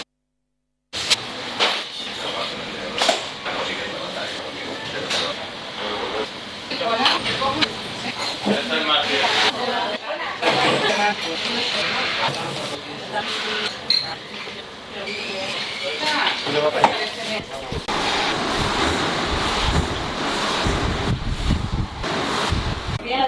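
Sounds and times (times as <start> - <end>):
sped up bar cafe ambience in a Spanish street: 1.0 - 23.1.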